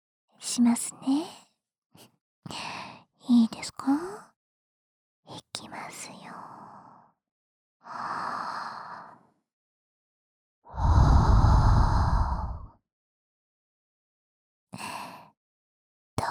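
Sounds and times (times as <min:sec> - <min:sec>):
speech: 0:00.4 - 0:01.4, 0:02.0 - 0:04.3, 0:05.3 - 0:06.6
soft breath blown into the ear: 0:10.8 - 0:12.7.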